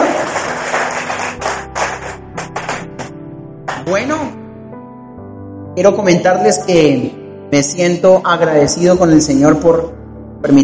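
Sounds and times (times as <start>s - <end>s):
audience applause: 0.0s - 3.1s
speech: 3.9s - 4.4s, 5.8s - 10.6s.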